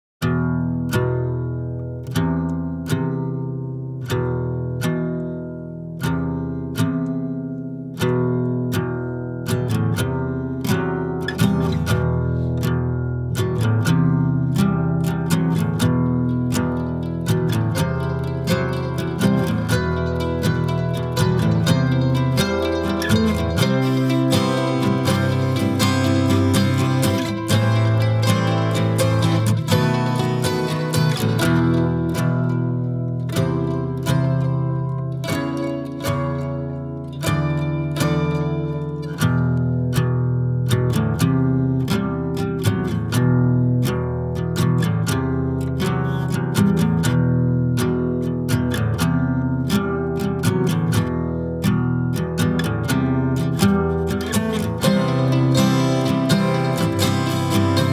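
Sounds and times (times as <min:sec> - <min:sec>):
acoustic music: 0:00.2 - 0:57.9.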